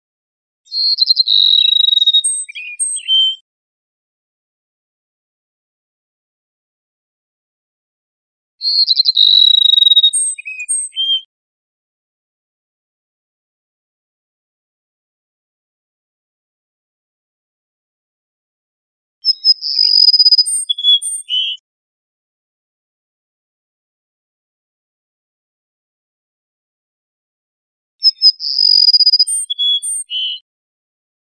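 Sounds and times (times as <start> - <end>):
Cassin's sparrow singing: 0.7 - 3.4, 8.6 - 11.3, 19.2 - 21.6, 28.0 - 30.4
speech: 0.9 - 1.5.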